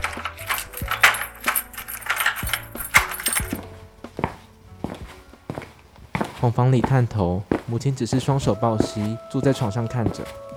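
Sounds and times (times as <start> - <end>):
door unlocking and opening: 0.0 - 3.6
keys jingling and scraping in a lock: 0.0 - 3.6
speech: 6.4 - 10.5.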